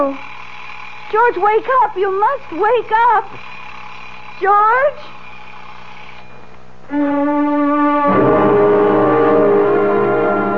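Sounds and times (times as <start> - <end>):
speech: 0.0 - 0.4, 1.1 - 3.6, 4.4 - 5.2, 6.9 - 8.8
alarm droning tone: 6.9 - 10.5.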